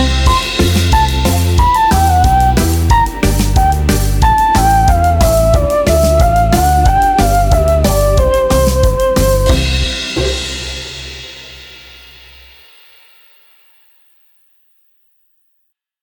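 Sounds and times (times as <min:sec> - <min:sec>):
karaoke singing: 0:00.0 - 0:10.5.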